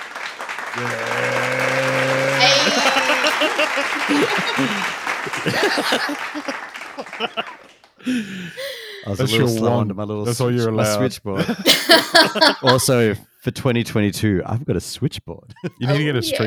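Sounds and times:
applause: 0:00.0 - 0:09.0
speech: 0:00.7 - 0:01.6, 0:02.8 - 0:16.4
laughter: 0:00.8 - 0:09.6, 0:11.0 - 0:13.1, 0:15.6 - 0:16.4.

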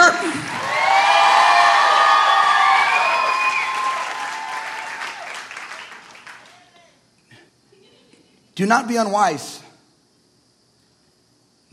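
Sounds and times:
audience applause: 0:00.0 - 0:06.8
cheering and high whoops: 0:00.4 - 0:06.0
speech: 0:08.6 - 0:09.6.

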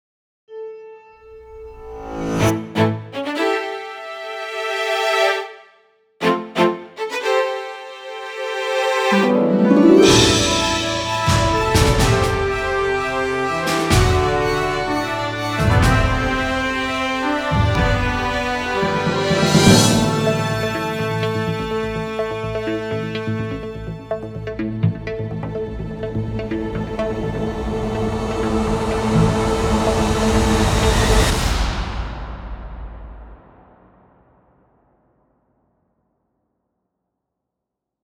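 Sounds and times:
music: 0:00.5 - 0:32.9.

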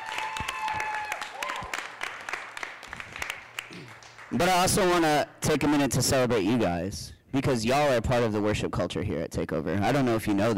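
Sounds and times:
youth worship gathering applause: 0:00.0 - 0:04.7
high voices cheering: 0:00.0 - 0:04.8
speech: 0:04.3 - 0:10.5.

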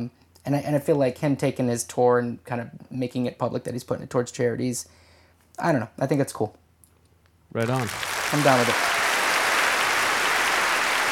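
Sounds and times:
speech: 0:00.0 - 0:05.0, 0:05.6 - 0:06.6, 0:07.5 - 0:08.9
crowd applause: 0:07.6 - 0:11.1.

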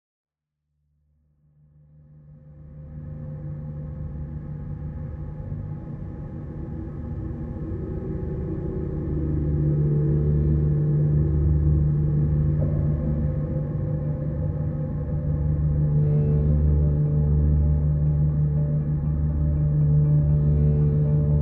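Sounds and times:
bowed instrument: 0:06.5 - 0:21.3.

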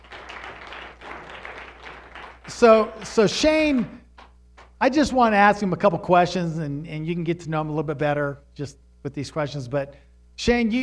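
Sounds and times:
group round of applause: 0:00.0 - 0:04.8
speech: 0:02.5 - 0:04.0, 0:04.8 - 0:10.8.

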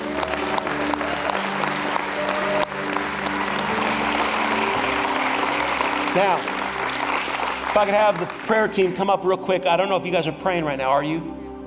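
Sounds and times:
audience clapping hands: 0:00.0 - 0:09.2
speech: 0:06.2 - 0:06.5, 0:07.7 - 0:11.4.

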